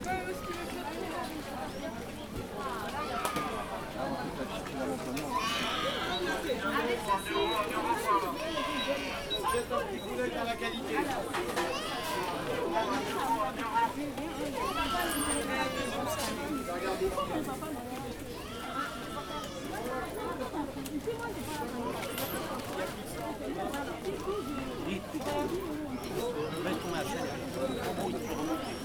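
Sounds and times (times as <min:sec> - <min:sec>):
Sunday market ambience in Angers: 0:00.0 - 0:28.8.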